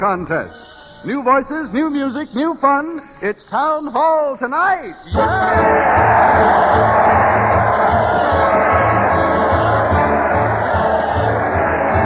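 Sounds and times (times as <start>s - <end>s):
speech: 0.0s - 6.9s
crowd cheering: 5.1s - 12.0s.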